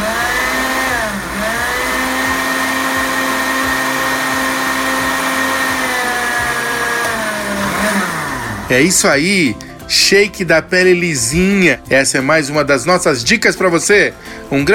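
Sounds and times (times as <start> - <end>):
blender blending a thick fruit shake: 0.0 - 9.8
speech: 8.7 - 14.7.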